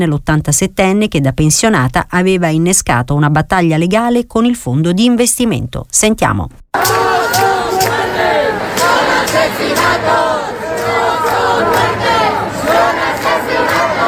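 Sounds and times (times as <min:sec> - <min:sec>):
speech: 0:00.0 - 0:07.1
protest crowd chanting in the street: 0:06.8 - 0:14.0.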